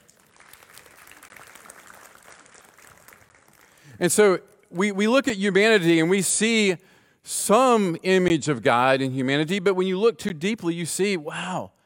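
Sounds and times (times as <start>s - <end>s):
audience applause: 0.0s - 4.0s
speech: 4.0s - 11.8s.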